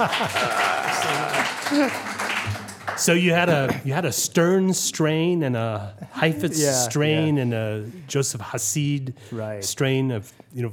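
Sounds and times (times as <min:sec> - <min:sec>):
laughter: 0:00.0 - 0:02.4, 0:03.1 - 0:04.3, 0:05.8 - 0:07.4
audience applauding: 0:00.0 - 0:03.8
speech: 0:00.0 - 0:10.7.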